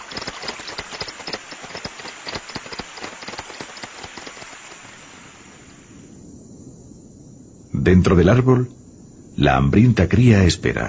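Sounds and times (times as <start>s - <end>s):
fish feeding at the water surface: 0.0s - 5.8s
speech: 7.8s - 8.8s, 9.4s - 10.8s.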